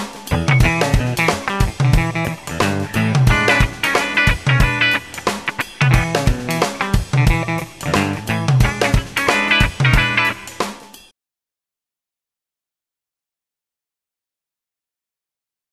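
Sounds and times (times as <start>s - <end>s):
rhythm guitar: 0.3s - 10.9s.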